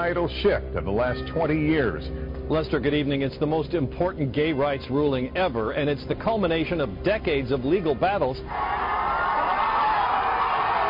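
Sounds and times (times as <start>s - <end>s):
speech: 0.0s - 8.9s
crowd gathered outside cheering a gay rights ruling: 8.5s - 10.8s.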